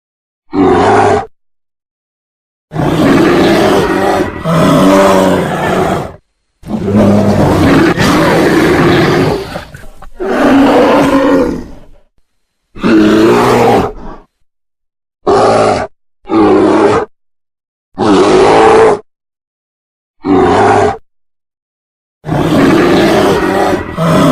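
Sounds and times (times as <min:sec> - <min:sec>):
brown bear roaring: 0:00.5 - 0:01.3, 0:02.7 - 0:12.1, 0:12.8 - 0:14.4, 0:15.2 - 0:17.1, 0:18.0 - 0:19.1, 0:20.2 - 0:21.0, 0:22.2 - 0:24.3.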